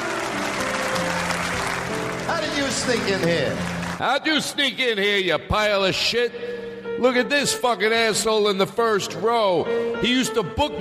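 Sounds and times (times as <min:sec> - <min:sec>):
audience applause: 0:00.0 - 0:04.4
speech: 0:02.6 - 0:10.8.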